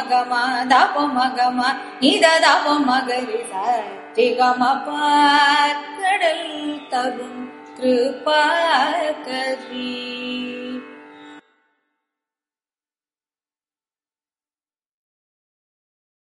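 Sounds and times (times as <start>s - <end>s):
kalpanaswaras in carnatic music: 0.0s - 11.9s.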